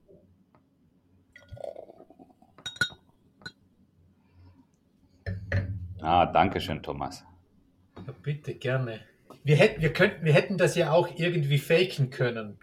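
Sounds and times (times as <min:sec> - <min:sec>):
glasses clinking in a toast: 0:02.6 - 0:03.6
speech: 0:06.0 - 0:07.3, 0:08.2 - 0:12.6.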